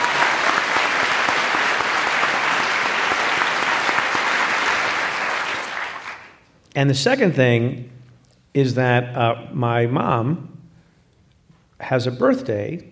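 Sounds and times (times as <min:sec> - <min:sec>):
audience applause: 0:00.0 - 0:06.4
speech: 0:06.8 - 0:07.9, 0:08.5 - 0:10.5, 0:11.8 - 0:12.8.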